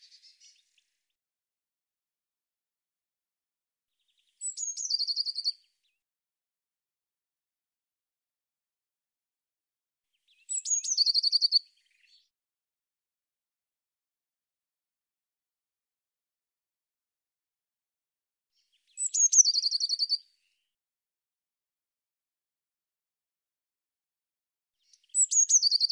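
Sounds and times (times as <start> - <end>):
bird singing: 0.0 - 0.9, 3.9 - 6.0, 10.1 - 12.3, 18.6 - 20.6, 24.8 - 25.9.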